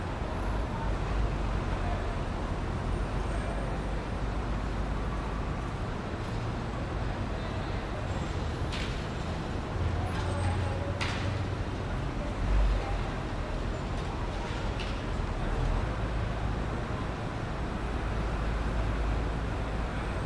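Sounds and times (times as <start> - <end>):
city roadside street sounds: 0.0 - 20.2.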